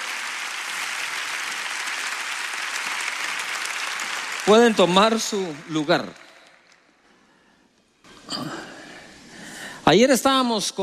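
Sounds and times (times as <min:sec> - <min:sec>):
audience applauding: 0:00.0 - 0:07.0
speech: 0:04.5 - 0:06.2, 0:09.9 - 0:10.8.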